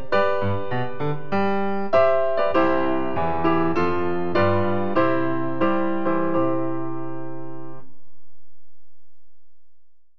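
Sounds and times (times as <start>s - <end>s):
shika instrumental music: 0.0s - 7.8s.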